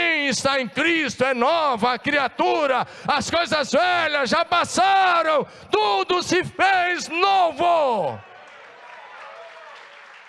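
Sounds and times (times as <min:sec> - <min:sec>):
speech: 0:00.3 - 0:08.3
audience applause: 0:08.1 - 0:10.2.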